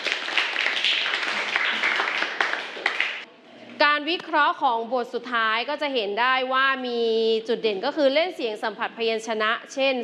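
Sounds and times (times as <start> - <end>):
group applause: 0.0 - 3.3
speech: 4.0 - 10.0.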